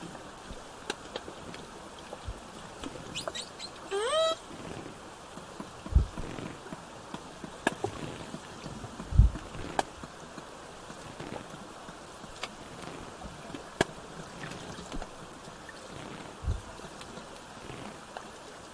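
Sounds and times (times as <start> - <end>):
steady background hiss: 0.0 - 18.7
killer whale pulsed call: 3.1 - 4.4.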